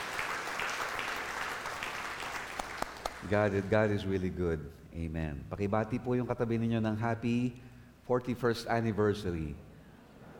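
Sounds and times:
congregation applauding in church: 0.0 - 4.0
speech: 3.2 - 9.7.

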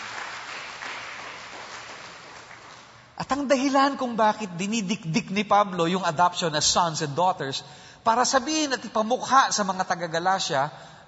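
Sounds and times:
audience applause: 0.0 - 3.1
speech: 3.2 - 11.0.

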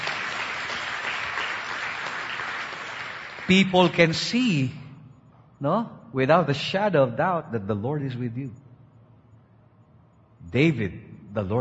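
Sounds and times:
congregation applauding in praise of God during a church sermon: 0.0 - 4.5
speech: 3.5 - 4.8, 5.6 - 8.6, 10.4 - 11.6.

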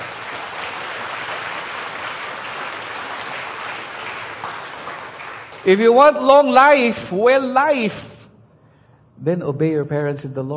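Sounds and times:
audience clapping loudly for the Lord: 0.0 - 7.9
speech: 5.6 - 8.1, 9.2 - 10.5.

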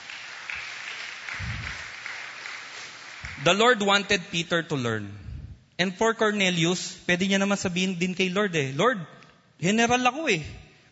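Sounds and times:
church congregation clapping: 0.0 - 4.4
speech: 3.4 - 5.2, 5.8 - 10.6.

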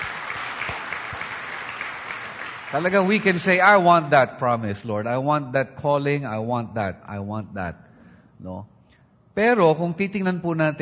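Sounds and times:
audience clapping loudly: 0.0 - 4.0
speech: 2.7 - 8.8, 9.4 - 10.7.

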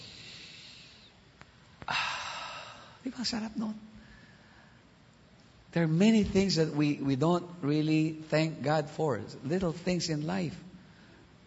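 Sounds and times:
deep breath taken on cue: 0.0 - 1.2, 1.9 - 3.0, 4.0 - 5.0
speech: 3.0 - 4.0, 5.7 - 10.7.

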